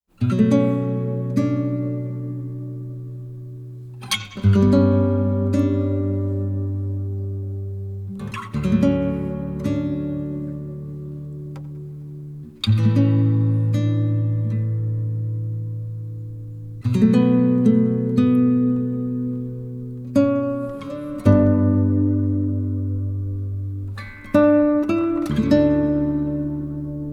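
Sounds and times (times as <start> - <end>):
acoustic guitar: 0.1 - 27.1.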